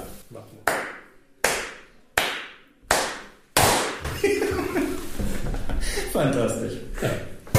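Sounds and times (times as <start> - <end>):
speech: 0.4 - 0.8, 6.1 - 7.4
hand claps for audio sync: 0.6 - 4.2
laughter: 4.1 - 6.2.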